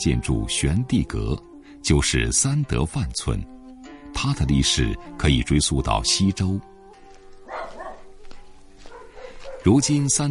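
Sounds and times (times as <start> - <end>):
speech: 0.0 - 6.7, 9.6 - 10.2
dog barking in a village: 7.4 - 8.2, 8.8 - 9.8.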